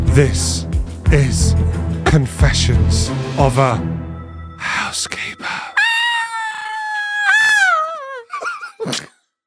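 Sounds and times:
speech: 0:00.2 - 0:04.0, 0:04.6 - 0:05.7
person screaming: 0:05.5 - 0:09.1.

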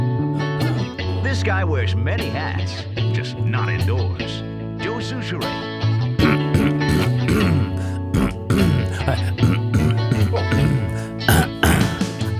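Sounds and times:
music: 0:00.0 - 0:12.3
throat clearing: 0:00.4 - 0:01.4, 0:06.2 - 0:12.3
speech: 0:01.2 - 0:06.0.

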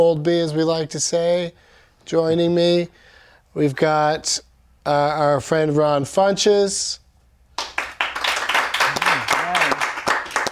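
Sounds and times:
speech: 0:00.0 - 0:07.0
small audience clapping: 0:07.6 - 0:10.5.

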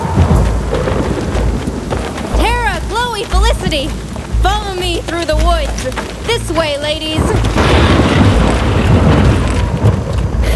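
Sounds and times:
thunder from storm lightning: 0:00.0 - 0:02.4, 0:07.2 - 0:10.5
speech: 0:03.7 - 0:09.2.

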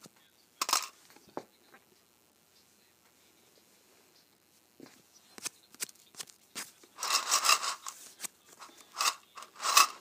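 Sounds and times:
paperclips and safety pins clicking and rattling: 0:00.6 - 0:00.9, 0:07.0 - 0:08.0, 0:08.6 - 0:10.0.

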